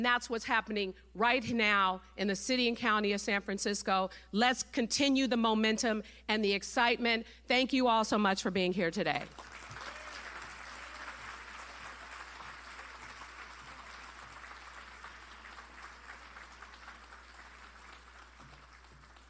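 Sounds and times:
speech: 0.0 - 9.5
audience applause: 9.3 - 19.2.

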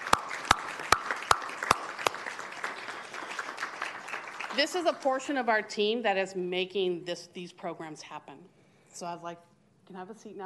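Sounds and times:
round of applause: 0.0 - 5.4
speech: 4.6 - 10.4.

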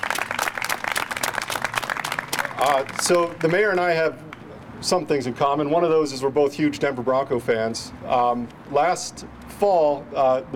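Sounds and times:
audience round of applause: 0.0 - 4.1
speech: 2.6 - 10.5.

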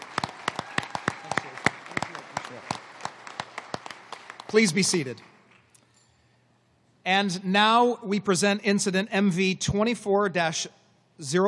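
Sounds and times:
round of applause: 0.0 - 5.6
speech: 2.5 - 2.8, 4.5 - 5.3, 7.1 - 11.4.

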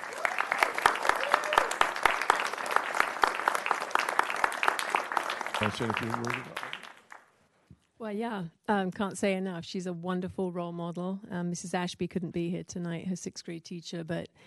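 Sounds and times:
audience applause for an award honoree in Rancho Santa Margarita: 0.0 - 7.2
speech: 5.6 - 6.8, 8.0 - 14.4.

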